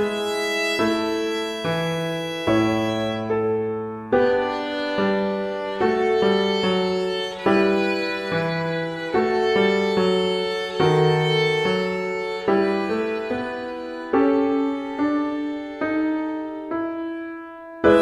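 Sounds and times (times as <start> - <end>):
violin playing: 0.0 - 17.0.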